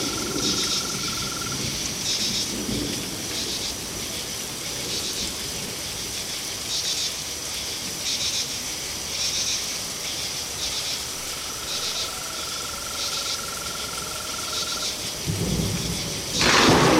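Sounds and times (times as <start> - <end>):
storm: 0.0 - 5.9, 14.7 - 16.9
crickets chirping: 0.0 - 16.9.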